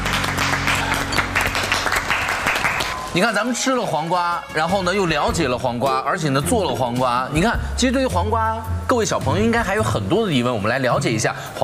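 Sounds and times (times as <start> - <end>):
children clapping: 0.0 - 3.1
speech: 3.1 - 11.6.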